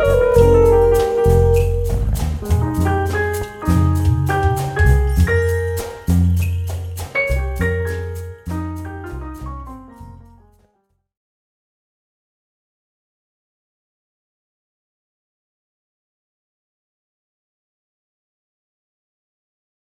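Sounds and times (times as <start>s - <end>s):
batucada samba percussion with jazz: 0.0s - 10.2s.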